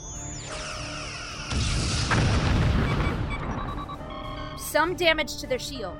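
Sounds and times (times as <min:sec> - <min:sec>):
starship phaser fire in a space battle: 0:01.0 - 0:03.8
speech: 0:04.7 - 0:05.9.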